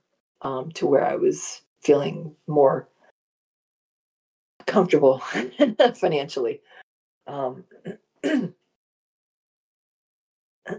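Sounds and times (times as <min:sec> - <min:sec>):
speech: 0:00.4 - 0:02.9, 0:04.7 - 0:08.6
person clearing throat: 0:08.2 - 0:08.5.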